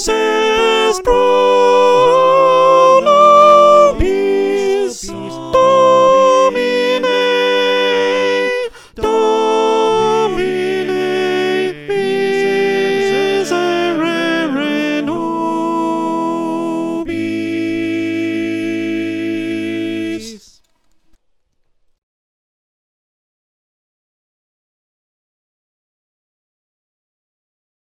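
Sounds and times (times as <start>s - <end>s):
soprano singing: 0.0s - 20.6s.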